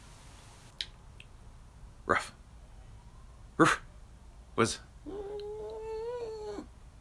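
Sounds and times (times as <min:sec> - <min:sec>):
speech: 0:03.6 - 0:03.8, 0:04.6 - 0:04.9
person imitating a dog's whine with a nasal hum: 0:05.0 - 0:06.7.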